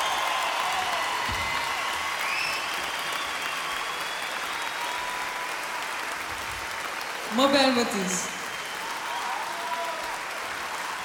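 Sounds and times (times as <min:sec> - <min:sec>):
concert audience applause: 0:00.0 - 0:11.0
speech: 0:07.3 - 0:08.4.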